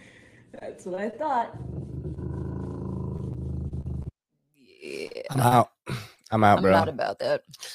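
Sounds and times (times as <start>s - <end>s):
speech: 0.8s - 2.2s, 5.4s - 5.7s, 6.3s - 7.7s
dog growling in a low rumbling snarl: 1.5s - 4.1s.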